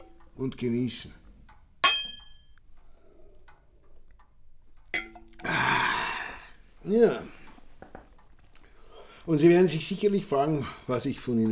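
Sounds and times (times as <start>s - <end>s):
speech: 0.4s - 1.2s, 6.9s - 7.4s, 9.3s - 11.5s
glasses clinking in a toast: 1.8s - 2.6s, 4.9s - 5.4s.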